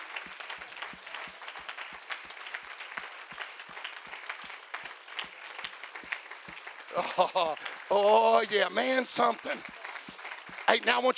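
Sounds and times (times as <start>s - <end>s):
audience applauding: 0.0s - 11.1s
laughter: 6.8s - 10.1s, 10.7s - 11.1s
speech: 7.0s - 9.7s, 10.7s - 11.1s.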